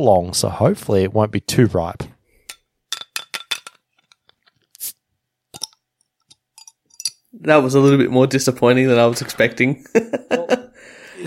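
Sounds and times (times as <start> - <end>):
speech: 0.0 - 2.1, 7.4 - 10.6
chilled drink can being opened: 5.6 - 5.8
laughter: 9.8 - 11.2.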